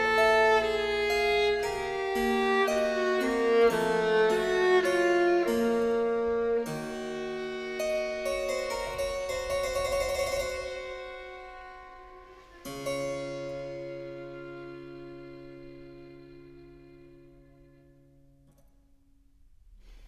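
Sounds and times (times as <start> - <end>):
harpsichord: 0.0 - 14.2
violin: 0.0 - 18.4.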